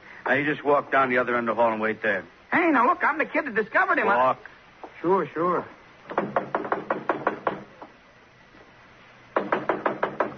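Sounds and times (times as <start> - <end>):
speech: 0.3 - 6.4
knocking on a door: 6.1 - 7.9, 9.4 - 10.3.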